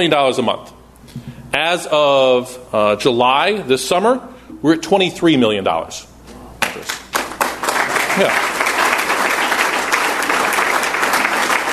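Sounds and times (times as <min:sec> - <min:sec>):
speech: 0:00.0 - 0:06.1, 0:06.8 - 0:07.0, 0:08.2 - 0:08.5
audience applause: 0:06.7 - 0:11.7.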